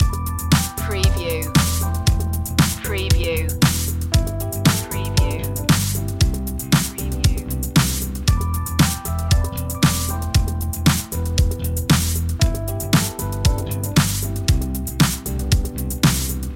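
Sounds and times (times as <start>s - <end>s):
funk loop: 0.0s - 16.5s.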